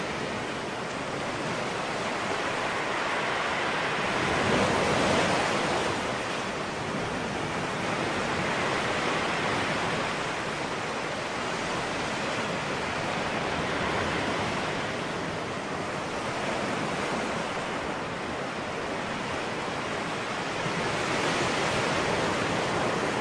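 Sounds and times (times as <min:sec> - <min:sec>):
ocean waves on tropical beaches: 0:00.0 - 0:23.2.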